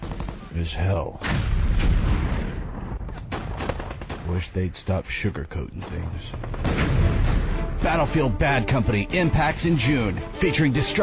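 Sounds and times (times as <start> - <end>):
gunfire sound effect: 0.0 - 0.5, 1.2 - 4.6, 5.9 - 8.2
speech: 0.6 - 2.0, 4.3 - 7.0, 7.8 - 11.0
explosion sound effect: 1.2 - 4.4, 6.3 - 7.6.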